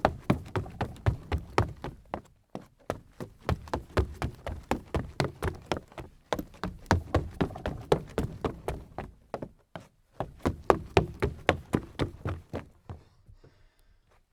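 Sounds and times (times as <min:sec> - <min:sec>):
sneakers running on wood: 0:00.0 - 0:13.1.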